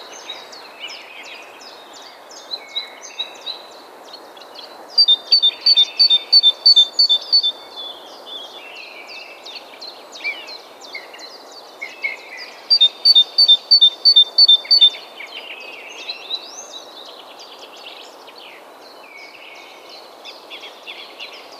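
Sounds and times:
twittering bird chorus: 0:00.0 - 0:21.5
great tit calling: 0:05.0 - 0:07.6, 0:12.0 - 0:15.0.

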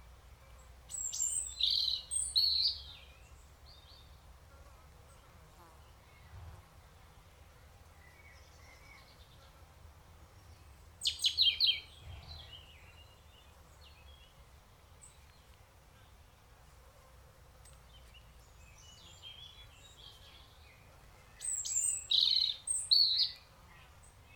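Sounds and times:
European robin singing: 0:00.9 - 0:04.2, 0:10.4 - 0:16.4, 0:17.7 - 0:24.3.

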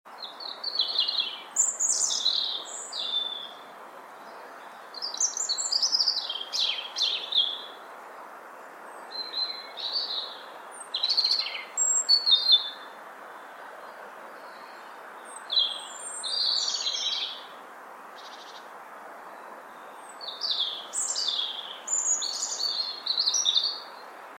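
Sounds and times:
European robin singing: 0:00.1 - 0:17.6, 0:18.2 - 0:24.0
hiss: 0:00.1 - 0:24.3.

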